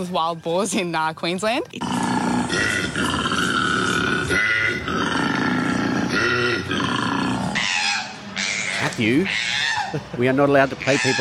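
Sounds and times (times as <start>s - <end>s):
speech: 0.0s - 3.3s, 9.0s - 11.1s
koala bellowing: 1.8s - 10.0s.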